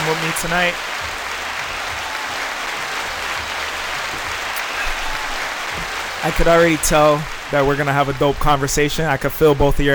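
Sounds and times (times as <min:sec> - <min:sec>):
group of hands clapping: 0:00.0 - 0:08.8
speech: 0:00.1 - 0:01.2, 0:06.2 - 0:09.9.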